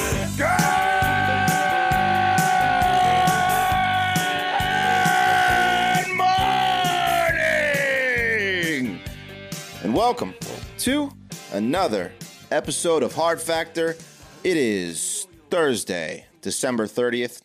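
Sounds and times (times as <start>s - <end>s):
gut-wrenching scream: 0.2s - 8.8s
speech: 10.1s - 17.4s.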